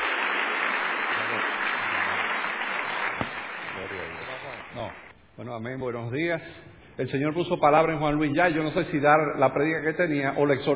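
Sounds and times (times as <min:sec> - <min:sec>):
audience applause: 0:00.0 - 0:05.1
speech: 0:04.8 - 0:10.7.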